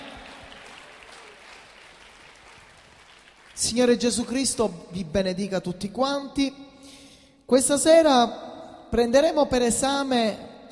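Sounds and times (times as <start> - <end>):
audience applauding: 0.0 - 3.9
speech: 3.6 - 10.7.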